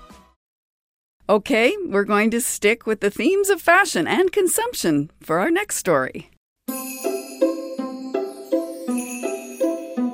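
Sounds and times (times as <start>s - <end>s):
speech: 1.3s - 6.8s
jingle bells ringing: 6.7s - 10.1s.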